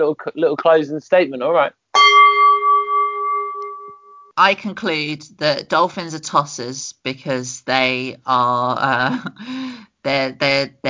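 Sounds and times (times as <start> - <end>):
speech: 0.0 - 1.8, 4.4 - 10.8
bell struck ringing: 2.0 - 4.3.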